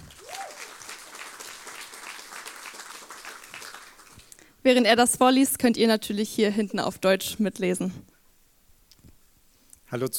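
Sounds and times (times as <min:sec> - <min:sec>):
audience applause: 0:00.0 - 0:04.4
speech: 0:04.6 - 0:08.1, 0:09.9 - 0:10.1.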